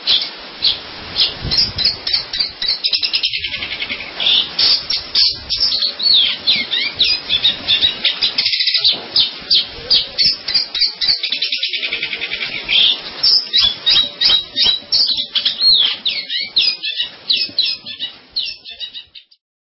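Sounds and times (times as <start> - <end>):
long-tailed shrike song: 0.0 - 19.4.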